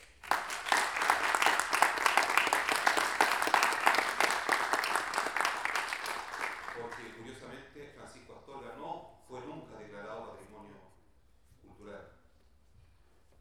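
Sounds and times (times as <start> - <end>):
audience applause at a talk on traditional improvised verse in Rancagua: 0.0 - 7.2.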